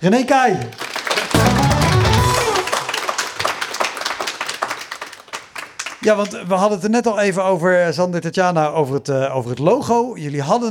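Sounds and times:
speech: 0:00.0 - 0:01.7, 0:06.0 - 0:10.6
crowd applauding: 0:00.6 - 0:06.1.

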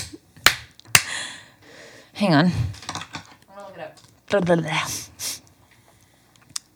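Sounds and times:
hand clapping: 0:00.0 - 0:01.2
speech: 0:02.2 - 0:02.8, 0:03.8 - 0:05.1.

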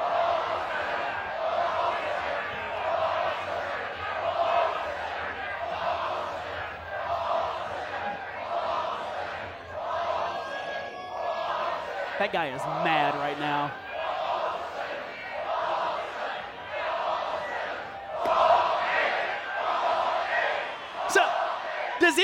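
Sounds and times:
crowd screaming: 0:00.0 - 0:22.2
speech: 0:12.2 - 0:13.8.

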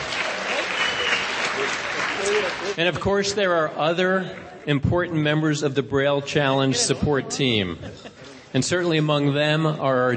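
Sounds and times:
audience applause: 0:00.0 - 0:02.8
speech: 0:02.3 - 0:10.1.

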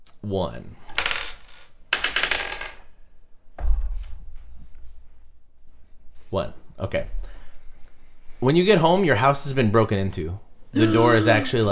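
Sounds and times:
speech: 0:00.2 - 0:00.9, 0:06.3 - 0:07.3, 0:08.4 - 0:11.7
dice clattering across a hard surface: 0:00.9 - 0:02.8.

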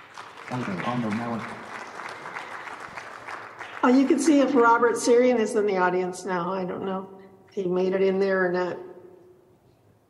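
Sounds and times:
audience clapping at a conference afternoon session: 0:00.0 - 0:05.0
speech: 0:00.5 - 0:01.6, 0:03.8 - 0:08.9.

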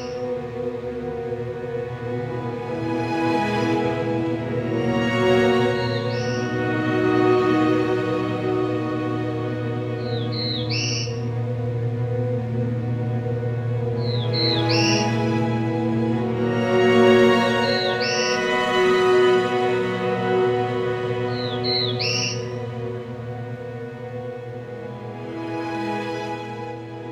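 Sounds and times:
black-throated blue warbler buzzy song: 0:00.0 - 0:01.1, 0:05.1 - 0:23.1
low tonal sounds: 0:00.0 - 0:27.1.

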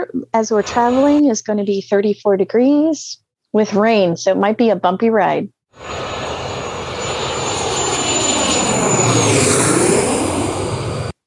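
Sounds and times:
speech: 0:00.0 - 0:06.2
Learjet taking off: 0:00.6 - 0:01.2, 0:05.8 - 0:11.2.

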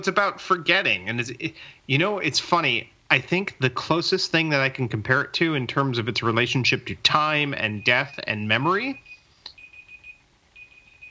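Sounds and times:
speech: 0:00.0 - 0:09.0
timer going off with high-pitched electronic beeps: 0:07.4 - 0:11.0.

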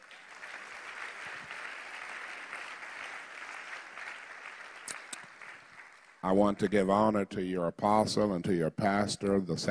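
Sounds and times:
church congregation clapping hands: 0:00.0 - 0:07.2
speech: 0:06.2 - 0:09.6.

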